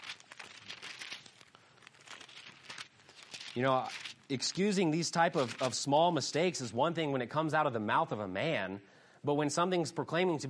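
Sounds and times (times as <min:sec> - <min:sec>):
thin Bible pages being flipped: 0:00.0 - 0:06.0
speech: 0:03.6 - 0:10.4.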